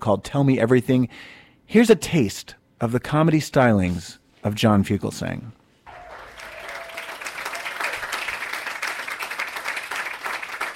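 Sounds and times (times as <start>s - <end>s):
speech: 0.0s - 5.6s
recorded audience applause: 5.9s - 10.7s.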